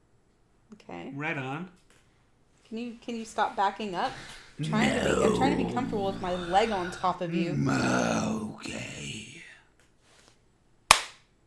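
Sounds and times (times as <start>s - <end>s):
speech: 0.9s - 1.8s, 2.7s - 8.9s
stage slap on a face: 10.9s - 11.3s.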